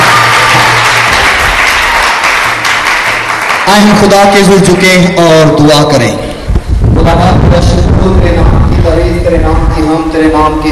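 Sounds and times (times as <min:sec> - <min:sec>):
loud applause from a large crowd: 0:00.0 - 0:04.9
speech: 0:03.7 - 0:06.2, 0:06.9 - 0:10.7.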